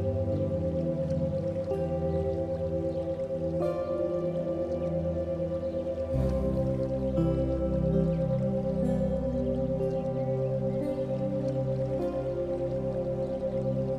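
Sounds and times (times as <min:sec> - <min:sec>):
music with a 528 Hz frequency: 0:00.0 - 0:13.9.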